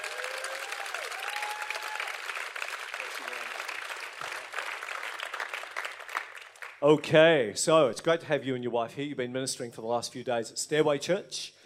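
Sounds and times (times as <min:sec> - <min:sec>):
audience applause welcoming a speaker: 0:00.0 - 0:06.8
speech: 0:06.8 - 0:11.6.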